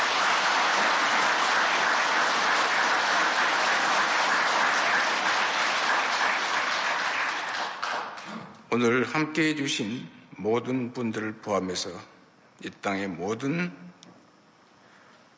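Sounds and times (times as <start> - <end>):
audience applause: 0.0 - 8.3
speech: 8.7 - 13.9.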